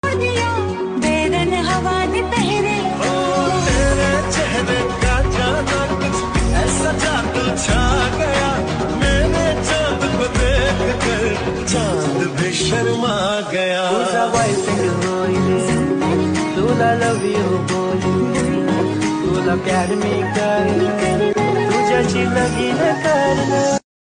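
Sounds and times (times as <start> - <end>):
remixed Marathi song: 0.0 - 23.8.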